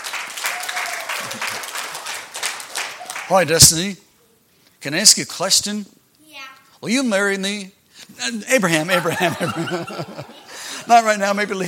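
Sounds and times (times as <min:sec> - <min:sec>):
audience applause: 0:00.0 - 0:03.5
speech: 0:03.3 - 0:04.0, 0:04.8 - 0:11.6
laughter: 0:08.8 - 0:11.2.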